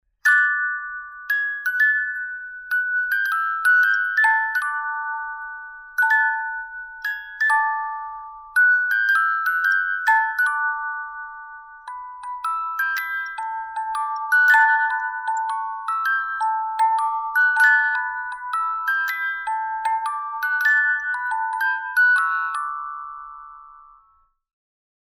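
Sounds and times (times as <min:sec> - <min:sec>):
music box: 0:00.2 - 0:24.4.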